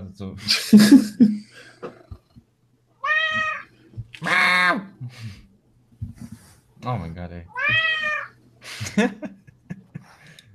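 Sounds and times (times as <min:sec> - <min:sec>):
speech: 0:00.2 - 0:01.9, 0:06.9 - 0:08.2, 0:09.0 - 0:09.4
laughter: 0:00.4 - 0:01.4, 0:08.7 - 0:10.4
cat meowing: 0:03.0 - 0:04.8, 0:07.5 - 0:08.4.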